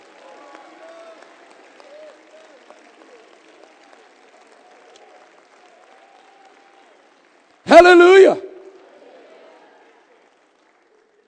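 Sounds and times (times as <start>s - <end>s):
audience clapping: 0.0s - 11.2s
voices shouting praise: 7.7s - 8.7s.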